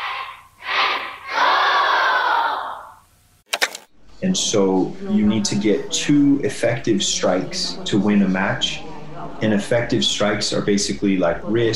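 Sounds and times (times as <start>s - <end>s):
kendo trainees' loud battle yells: 0.0s - 3.0s
speech: 4.2s - 8.8s, 9.4s - 11.7s.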